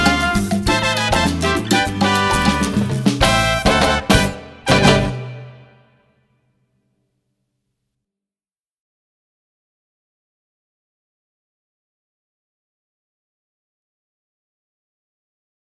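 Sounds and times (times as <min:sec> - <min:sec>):
instrumental reprise: 0:00.0 - 0:06.0.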